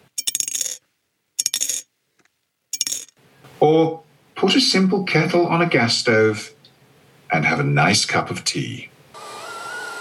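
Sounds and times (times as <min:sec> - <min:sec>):
coins dropping into a piggy bank: 0:00.0 - 0:00.8, 0:01.4 - 0:01.9, 0:02.7 - 0:03.2
speech: 0:03.6 - 0:06.6, 0:07.3 - 0:08.9.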